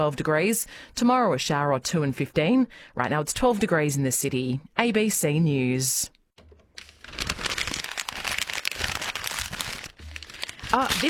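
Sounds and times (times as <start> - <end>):
speech: 0.0 - 6.2
plastic shopping bags crinkling: 6.8 - 11.0.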